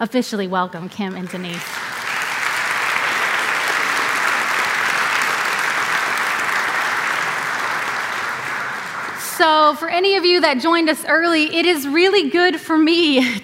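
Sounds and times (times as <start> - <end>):
speech: 0.0 - 1.9, 9.4 - 13.4
audience applause: 1.1 - 9.8.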